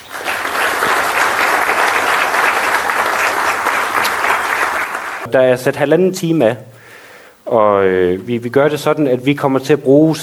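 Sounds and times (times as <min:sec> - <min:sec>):
university audience applause welcoming a panel of speakers: 0:00.0 - 0:05.3
speech: 0:05.3 - 0:06.7, 0:07.5 - 0:10.2.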